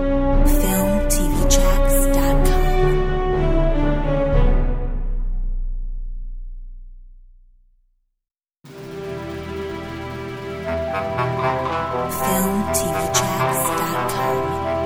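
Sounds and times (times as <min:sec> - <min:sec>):
orchestral music: 0:00.0 - 0:05.4, 0:08.7 - 0:14.8.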